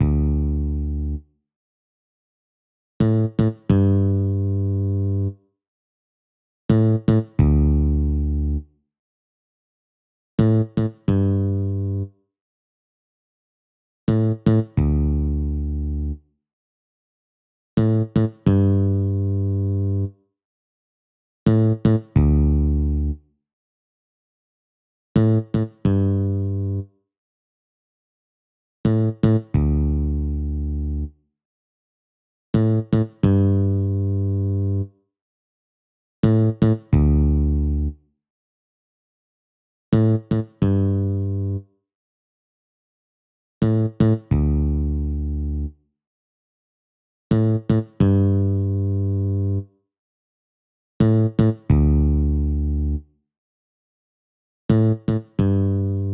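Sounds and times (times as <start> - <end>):
bass: 0.0 - 1.3, 3.0 - 5.4, 6.7 - 8.7, 10.4 - 12.2, 14.1 - 16.2, 17.8 - 20.2, 21.5 - 23.2, 25.2 - 27.0, 28.8 - 31.2, 32.6 - 35.0, 36.2 - 38.0, 39.9 - 41.7, 43.6 - 45.8, 47.3 - 49.8, 51.0 - 53.1, 54.7 - 56.1.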